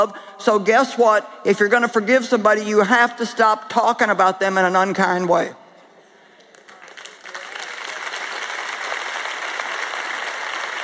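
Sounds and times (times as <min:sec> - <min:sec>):
speech: 0:00.0 - 0:05.6
audience clapping: 0:06.4 - 0:10.8.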